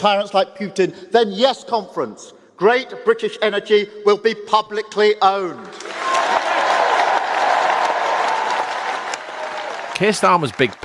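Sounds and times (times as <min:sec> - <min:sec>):
speech: 0:00.0 - 0:06.0, 0:10.0 - 0:10.8
standing ovation for Keir Starmer at the Labour conference: 0:05.7 - 0:10.8.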